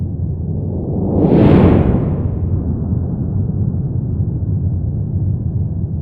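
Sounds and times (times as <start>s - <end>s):
rubble whoosh: 0.1s - 5.8s.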